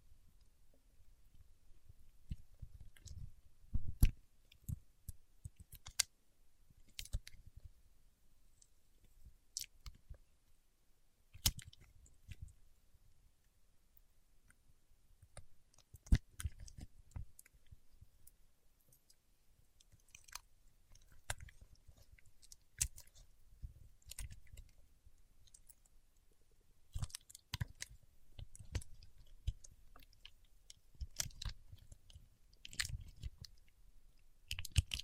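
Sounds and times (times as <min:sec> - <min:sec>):
paraffin wax peeled, tapped and scratched: 0:01.3 - 0:06.2, 0:06.8 - 0:07.8, 0:11.3 - 0:12.6, 0:14.4 - 0:35.0.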